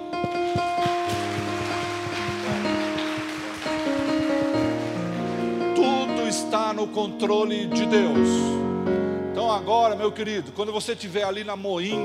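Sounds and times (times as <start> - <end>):
sustained keyboard melody: 0.0 - 10.6, 11.8 - 12.0
audience applause: 0.3 - 6.4
speech: 6.8 - 12.0.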